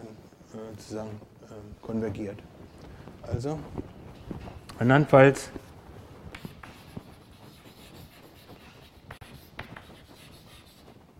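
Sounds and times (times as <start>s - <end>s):
speech: 0.7s - 2.6s, 3.2s - 3.8s, 4.8s - 5.6s
pen strokes scratching on paper writing shorthand during a maths lecture: 6.3s - 11.0s.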